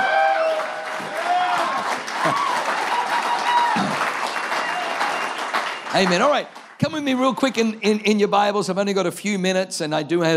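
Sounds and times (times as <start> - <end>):
audience applause: 0.0 - 7.6
speech: 6.0 - 10.3.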